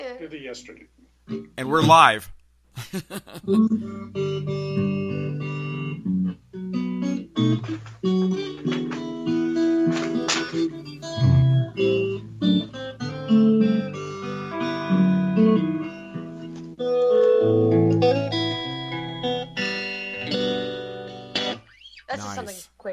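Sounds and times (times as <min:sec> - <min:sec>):
speech: 0:00.1 - 0:05.5
guitar played with plucked notes and strummed chords: 0:01.3 - 0:02.2, 0:03.4 - 0:22.5
laughter: 0:02.8 - 0:03.7.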